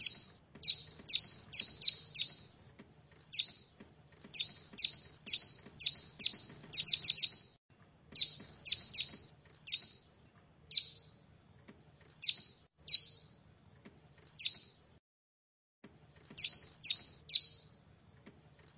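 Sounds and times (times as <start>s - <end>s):
bar-winged prinia giving high sharp down-slurred chirps: 0.0s - 2.6s, 3.3s - 10.1s, 10.7s - 11.2s, 12.2s - 13.4s, 14.4s - 14.9s, 16.3s - 17.8s.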